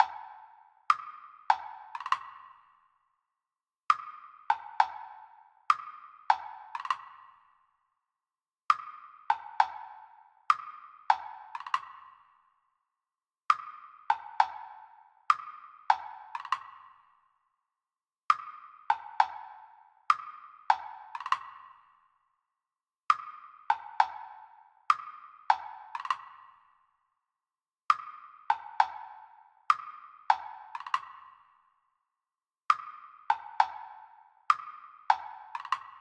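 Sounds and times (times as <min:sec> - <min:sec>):
percussion: 0:00.0 - 0:36.0.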